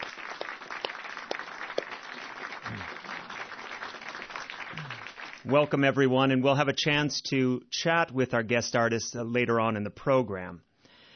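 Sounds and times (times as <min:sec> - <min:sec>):
studio audience applause: 0:00.0 - 0:05.8
speech: 0:05.4 - 0:10.7.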